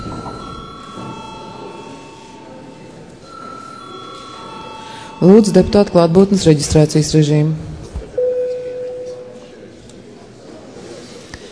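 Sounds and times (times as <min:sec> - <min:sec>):
parliament session bell ringing: 0:00.0 - 0:06.0
speech: 0:05.2 - 0:07.7.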